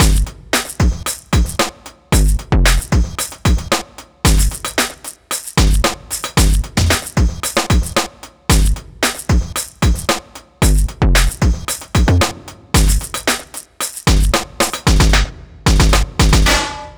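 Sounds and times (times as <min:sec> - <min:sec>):
eclectic electronica drum beat: 0:00.0 - 0:16.9.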